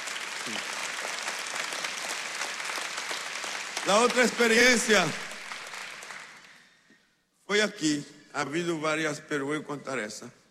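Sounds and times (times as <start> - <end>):
audience applause: 0.0 - 6.7
speech: 3.8 - 5.2, 7.5 - 10.4.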